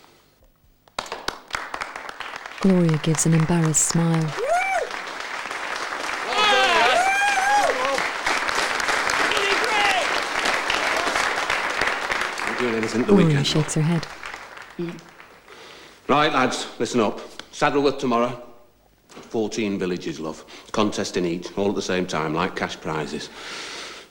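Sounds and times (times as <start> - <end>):
clapping growing into applause: 0.9 - 16.0
speech: 2.6 - 4.4, 12.8 - 14.2, 14.8 - 15.1, 16.1 - 18.5, 19.3 - 23.7.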